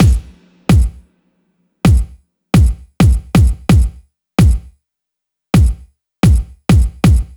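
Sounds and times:
bass drum loop: 0.0s - 1.0s, 1.9s - 4.7s, 5.6s - 7.3s.

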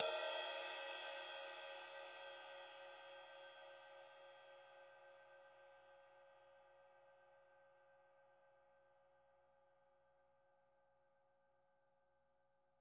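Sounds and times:
cymbal: 0.0s - 6.2s.

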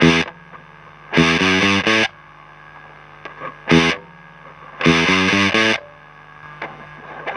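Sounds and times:
hot guitar in roots disco: 0.0s - 2.2s, 2.8s - 7.3s.

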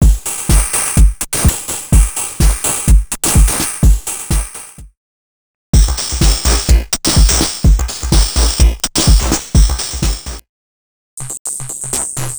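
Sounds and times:
industrial music at 126 bpm: 0.0s - 4.8s, 5.8s - 10.4s.

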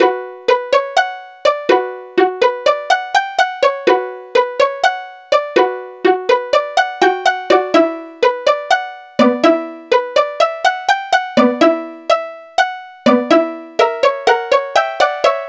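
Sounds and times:
pizzicato strings: 0.0s - 15.4s.

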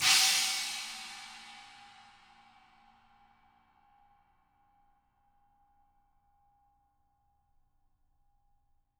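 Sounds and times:
china crash cymbal: 0.0s - 2.8s.

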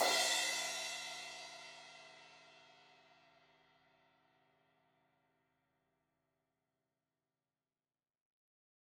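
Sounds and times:
16-inch crash cymbal hit on the edge: 0.0s - 1.2s.

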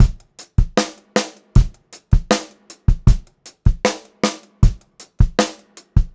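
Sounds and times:
funk groove drum loop: 0.0s - 6.1s.

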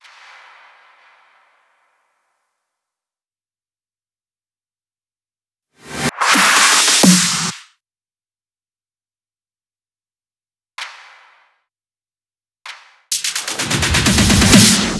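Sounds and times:
drum loop fill with effects: 5.8s - 7.6s, 13.1s - 14.9s.

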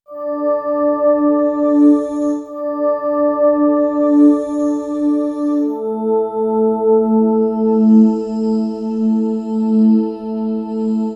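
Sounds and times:
ambient keys: 0.1s - 11.1s.

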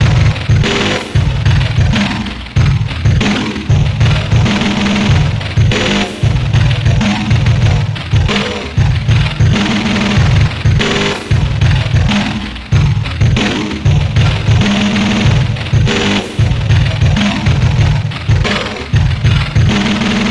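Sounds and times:
drum beat: 0.0s - 20.2s.

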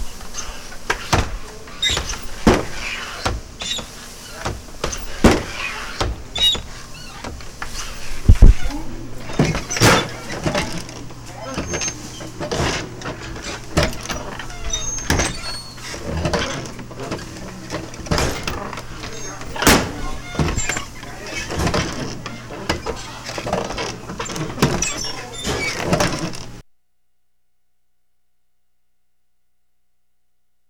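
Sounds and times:
swinging door: 0.0s - 26.6s.

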